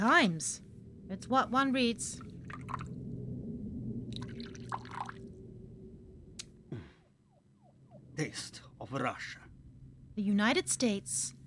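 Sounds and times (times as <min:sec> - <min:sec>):
speech: 0:00.1 - 0:02.8, 0:08.2 - 0:09.4, 0:10.2 - 0:11.4
Beluga vodka being poured into a glass: 0:04.2 - 0:05.2.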